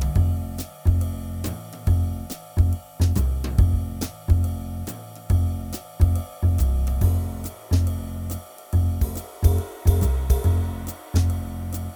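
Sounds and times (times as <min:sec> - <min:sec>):
jazz swing drone: 0:00.0 - 0:11.9.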